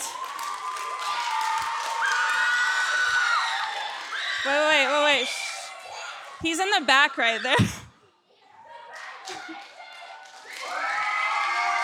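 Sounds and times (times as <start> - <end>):
high whoops: 0.0 - 4.9, 10.4 - 11.8
crowd clapping and cheering: 0.0 - 6.4, 8.8 - 11.8
speech: 4.4 - 5.4, 6.4 - 7.8.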